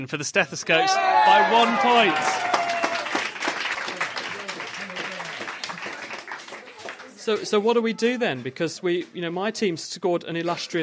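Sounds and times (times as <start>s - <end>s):
speech: 0.0s - 2.6s, 7.3s - 10.8s
audience cheering: 0.7s - 7.2s.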